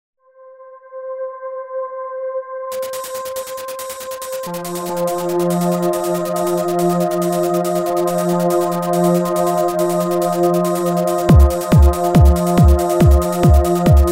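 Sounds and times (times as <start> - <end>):
trance music: 2.7 - 14.1.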